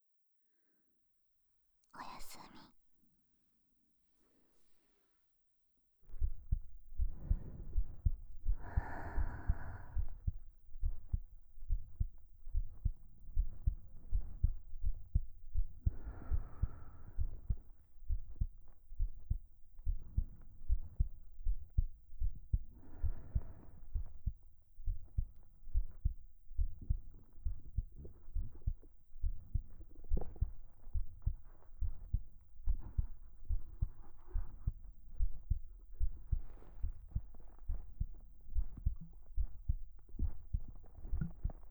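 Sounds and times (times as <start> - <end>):
heartbeat: 6.0 - 41.6.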